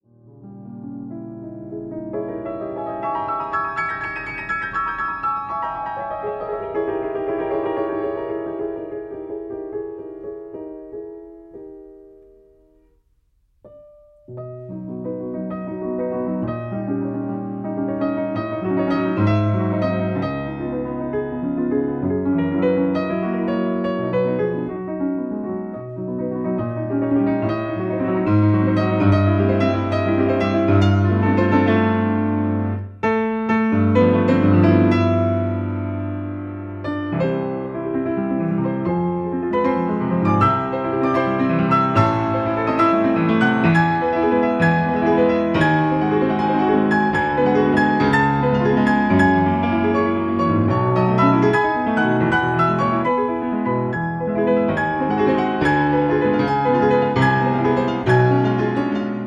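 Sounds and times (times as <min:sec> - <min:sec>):
grand piano: 0:00.0 - 0:59.2.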